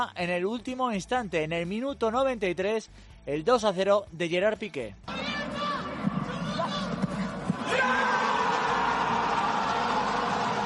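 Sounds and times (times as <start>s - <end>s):
speech: 0.0s - 5.2s
celebration with lots of shouting: 5.1s - 10.6s.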